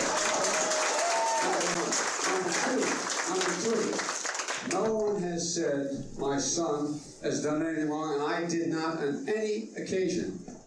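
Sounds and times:
crowd applauding: 0:00.0 - 0:04.9
speech: 0:05.6 - 0:10.5.

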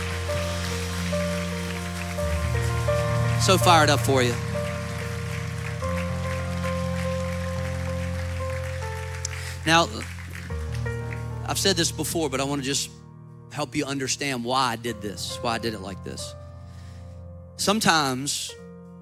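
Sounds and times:
audience clapping: 0:00.0 - 0:12.0
speech: 0:03.4 - 0:04.5, 0:09.7 - 0:10.2, 0:11.6 - 0:13.0, 0:13.6 - 0:16.4, 0:17.6 - 0:18.6.

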